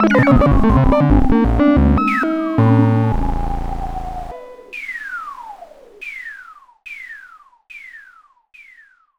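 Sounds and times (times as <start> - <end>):
5U modular synthesizer effects: 0.0 - 6.0.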